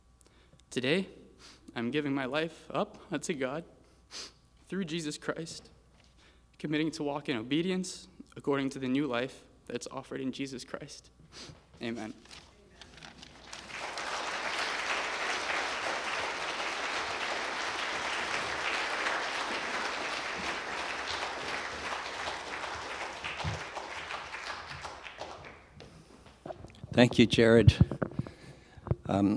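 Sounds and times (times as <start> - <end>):
speech: 0.7 - 5.8, 6.6 - 12.4, 27.0 - 28.0, 29.1 - 29.3
audience applause: 13.4 - 25.8.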